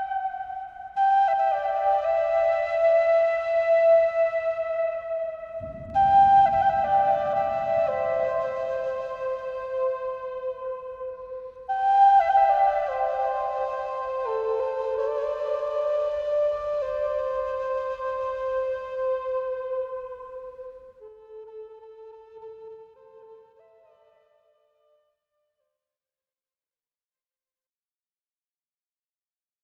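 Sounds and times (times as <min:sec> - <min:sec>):
Asian zen spa meditation music: 0:00.0 - 0:25.1
rain storm: 0:05.7 - 0:08.7.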